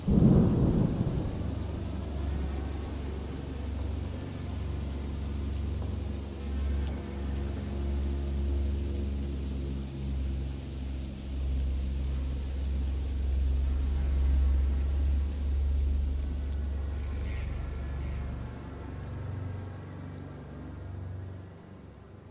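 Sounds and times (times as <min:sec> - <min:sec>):
thunder: 0:00.0 - 0:05.9
rain: 0:00.0 - 0:22.2.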